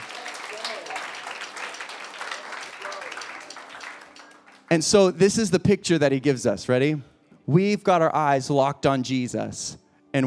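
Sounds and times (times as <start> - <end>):
audience clapping: 0.0 - 4.9
speech: 4.7 - 10.2.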